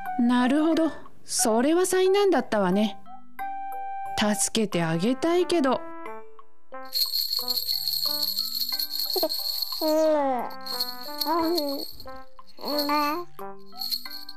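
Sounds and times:
speech: 0:00.2 - 0:03.0, 0:04.2 - 0:05.9, 0:09.2 - 0:13.5
plinking little melody: 0:06.9 - 0:14.3
toy rattle being shaken: 0:06.9 - 0:14.3.

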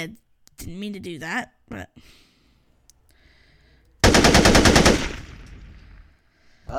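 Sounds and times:
speech: 0:00.0 - 0:02.2
AK-47 rifle gunfire burst: 0:04.0 - 0:06.0.

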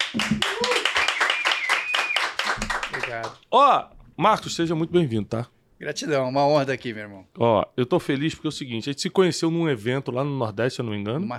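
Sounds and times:
crowd clapping: 0:00.0 - 0:03.4
whoops and cheers: 0:00.3 - 0:02.4
speech: 0:03.1 - 0:11.3.

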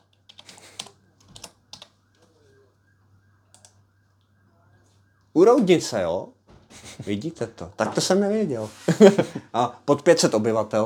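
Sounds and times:
typing on a computer keyboard: 0:00.0 - 0:02.3, 0:03.5 - 0:03.8
speech: 0:05.4 - 0:06.4, 0:07.0 - 0:10.8
laughter: 0:06.7 - 0:07.3, 0:08.8 - 0:09.6.

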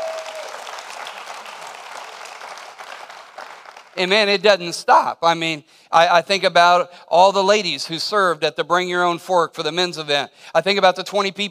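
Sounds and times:
audience hand clapping: 0:00.0 - 0:04.4
speech: 0:04.0 - 0:11.4.

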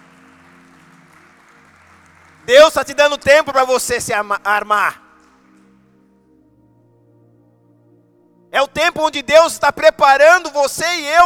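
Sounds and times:
audience applause: 0:00.0 - 0:03.6
speech: 0:02.4 - 0:05.0, 0:08.7 - 0:11.2.

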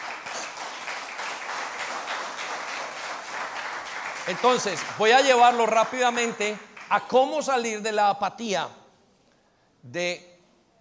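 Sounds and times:
audience applause: 0:00.0 - 0:07.2
speech: 0:04.2 - 0:08.8, 0:09.8 - 0:10.3.

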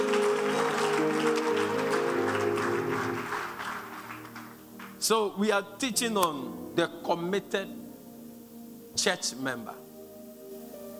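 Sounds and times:
audience clapping hands: 0:00.0 - 0:05.2
sustained musical tone: 0:00.0 - 0:10.9
speech: 0:05.1 - 0:07.8, 0:09.0 - 0:09.8.

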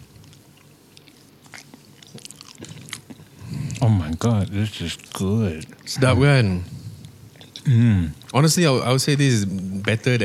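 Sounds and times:
biting and chewing chicken, rice and broccoli: 0:00.0 - 0:06.1, 0:07.0 - 0:08.4
speech: 0:03.8 - 0:06.8, 0:07.6 - 0:10.2.

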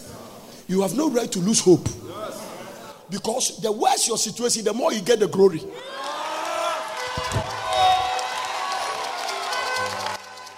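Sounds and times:
speech: 0:00.7 - 0:02.1, 0:03.1 - 0:06.1
audience shouting and screaming: 0:05.7 - 0:10.5.

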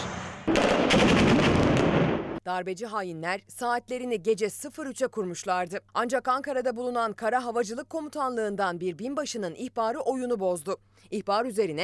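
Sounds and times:
gunfire from the air: 0:00.0 - 0:02.4
speech: 0:02.5 - 0:11.8.

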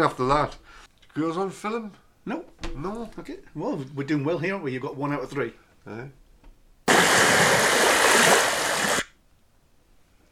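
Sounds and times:
speech: 0:00.0 - 0:06.2
rain falling: 0:06.9 - 0:09.0.

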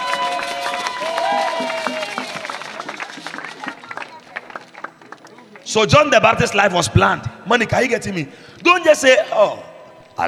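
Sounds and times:
audience clapping: 0:00.0 - 0:05.7
crowd noise: 0:00.0 - 0:10.2
speech: 0:05.7 - 0:10.2.

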